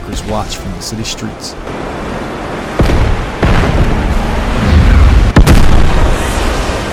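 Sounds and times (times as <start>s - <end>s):
speech: 0.2s - 2.2s
massive building explosion blasts: 2.7s - 6.9s.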